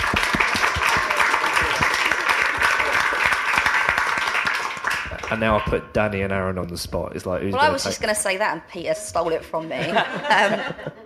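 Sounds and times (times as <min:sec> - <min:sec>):
applause: 0:00.0 - 0:05.8
laughter: 0:01.5 - 0:03.3, 0:09.6 - 0:11.0
speech: 0:05.3 - 0:11.0.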